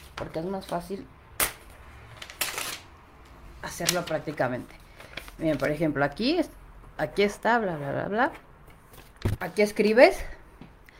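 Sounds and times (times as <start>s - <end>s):
speech: 0.2s - 1.2s, 3.6s - 4.8s, 5.4s - 8.5s, 9.3s - 10.4s
sheet of paper torn from a pad: 2.2s - 2.9s.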